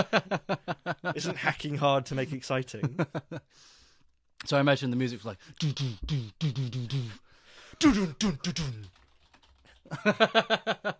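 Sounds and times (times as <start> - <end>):
speech: 0.0 - 3.8, 4.4 - 7.2, 7.8 - 9.0, 9.8 - 10.9
fast typing on a computer keyboard: 8.5 - 9.9.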